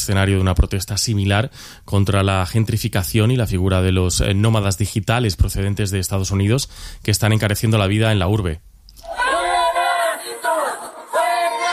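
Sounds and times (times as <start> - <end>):
speech: 0.0 - 9.2
protest crowd chanting: 9.1 - 11.7.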